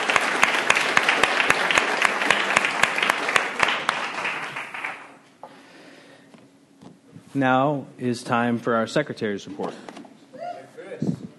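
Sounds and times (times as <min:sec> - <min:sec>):
audience applause: 0:00.0 - 0:05.2
speech: 0:07.4 - 0:10.0.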